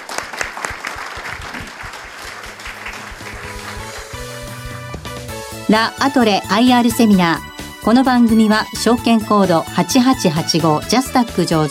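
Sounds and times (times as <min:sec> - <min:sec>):
audience applause: 0:00.0 - 0:05.2
music: 0:02.4 - 0:11.7
speech: 0:05.7 - 0:11.7.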